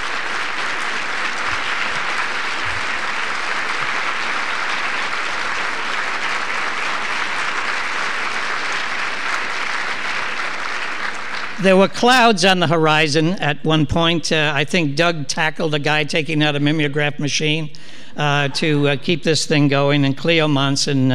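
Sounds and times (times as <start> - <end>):
audience applause: 0.0 - 12.0
speech: 11.6 - 21.1.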